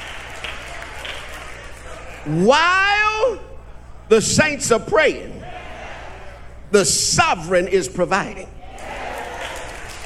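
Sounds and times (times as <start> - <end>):
faint church congregation clapping during a sermon: 0.0 - 2.3, 8.8 - 10.0
speech: 2.2 - 3.5, 4.1 - 5.4, 6.7 - 8.6.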